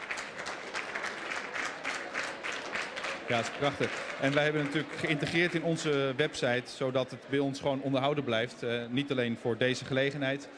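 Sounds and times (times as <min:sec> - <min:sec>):
audience clapping at a presentation: 0:00.0 - 0:06.2
speech: 0:03.3 - 0:10.5.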